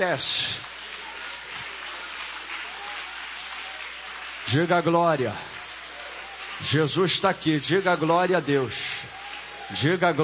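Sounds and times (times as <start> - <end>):
speech: 0.0 - 0.7, 4.5 - 5.5, 6.6 - 10.2
audience applauding: 0.0 - 10.2.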